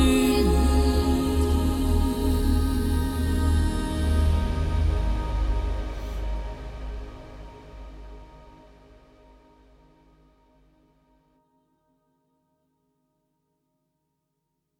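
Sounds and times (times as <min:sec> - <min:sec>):
fairy forest fantasy music: 0:00.0 - 0:09.2.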